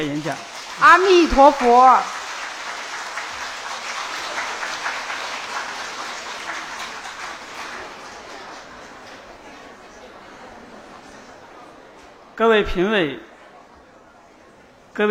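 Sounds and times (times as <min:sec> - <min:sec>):
speech: 0:00.0 - 0:02.2, 0:12.4 - 0:13.3
warm audience applause: 0:00.0 - 0:11.1.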